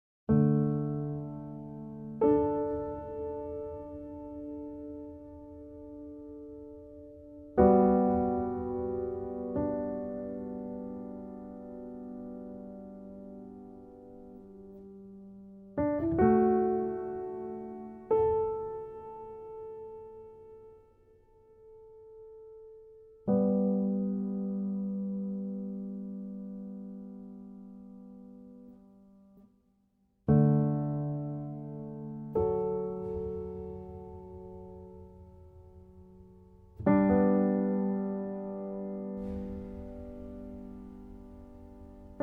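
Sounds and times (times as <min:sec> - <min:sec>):
piano interlude: 0:00.3 - 0:29.5, 0:30.3 - 0:42.2.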